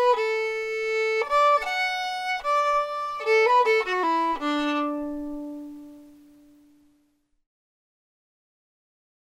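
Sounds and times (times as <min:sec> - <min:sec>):
fiddle: 0:00.0 - 0:06.6.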